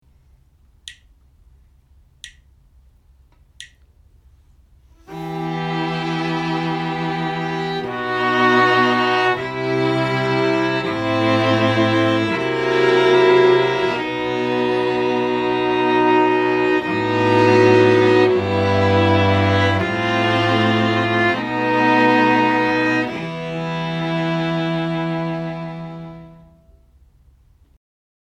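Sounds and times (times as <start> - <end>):
string quartet playing: 5.0 - 26.7.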